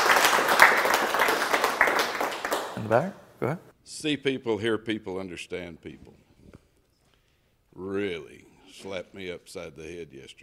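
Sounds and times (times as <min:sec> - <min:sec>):
audience applause: 0:00.0 - 0:03.1
speech: 0:02.9 - 0:06.2, 0:07.8 - 0:10.4.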